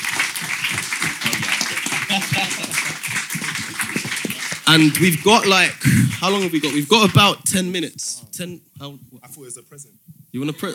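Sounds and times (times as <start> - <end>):
audience applause: 0.0 - 7.4
speech: 2.4 - 2.7, 4.7 - 10.7.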